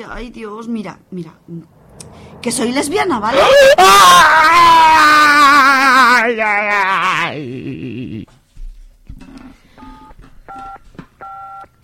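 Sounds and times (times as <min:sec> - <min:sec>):
speech: 0:00.0 - 0:08.2
telephone number being dialed on a keypad: 0:09.8 - 0:11.7.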